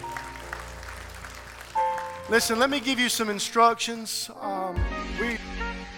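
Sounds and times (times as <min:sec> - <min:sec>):
audience clapping hands: 0:00.0 - 0:03.6
speech: 0:02.3 - 0:05.7.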